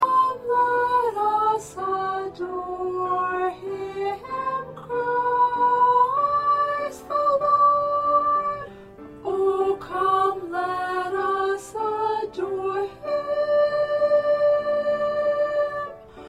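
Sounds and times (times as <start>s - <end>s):
first soprano singing: 0.0s - 16.2s.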